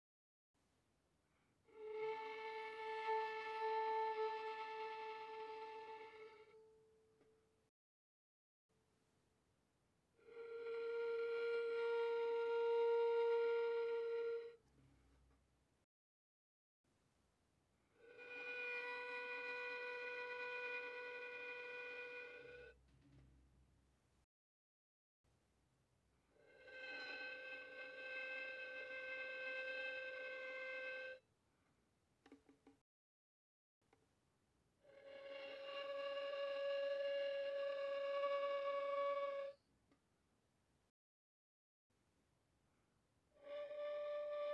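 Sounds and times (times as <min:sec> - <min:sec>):
violin bowed very softly on the G string: 0:01.7 - 0:07.0, 0:10.3 - 0:14.6, 0:18.0 - 0:22.8, 0:26.5 - 0:31.2, 0:34.9 - 0:39.6, 0:43.4 - 0:44.5.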